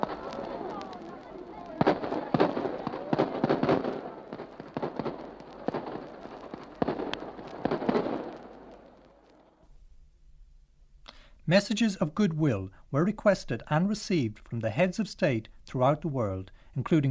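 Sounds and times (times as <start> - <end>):
murmuring background: 0.0 - 7.0
ceremonial rifle volley crackling down a line: 0.0 - 9.2
speech: 11.5 - 17.0.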